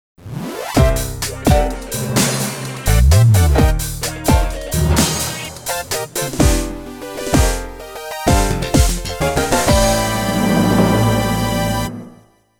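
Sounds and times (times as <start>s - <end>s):
fanfare: 0.8s - 12.3s.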